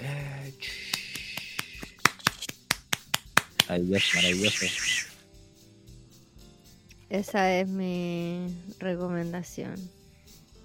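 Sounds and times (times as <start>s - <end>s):
applause: 0.8s - 3.7s
speech: 3.7s - 5.0s, 7.1s - 10.0s.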